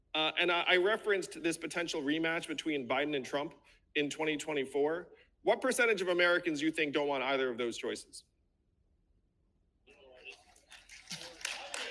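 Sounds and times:
speech: 0:00.2 - 0:08.3
audience applause: 0:10.2 - 0:11.9.

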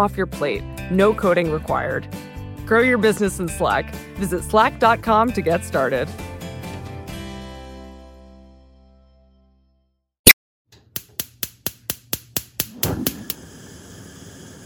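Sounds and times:
speech: 0:00.0 - 0:06.3
gas stove burner igniter clicking: 0:10.8 - 0:13.5.

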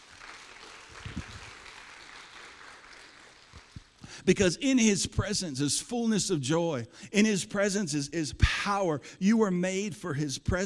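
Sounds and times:
audience applause: 0:00.0 - 0:04.0
speech: 0:04.2 - 0:10.6.

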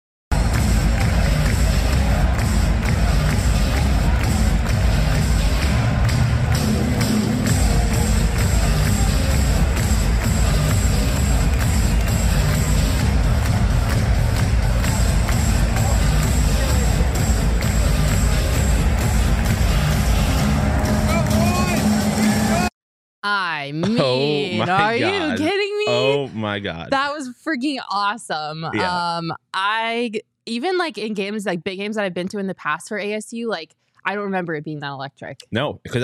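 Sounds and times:
huge stadium crowd cheering and chanting at a football game: 0:00.3 - 0:22.7, 0:24.6 - 0:26.6
speech: 0:23.3 - 0:36.0
laughter: 0:23.8 - 0:26.8, 0:28.7 - 0:29.0.

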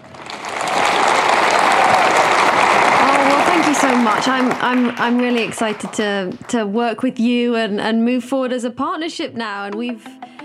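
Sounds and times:
audience applauding a speaker on stage: 0:00.0 - 0:06.6
speech: 0:04.0 - 0:10.3.

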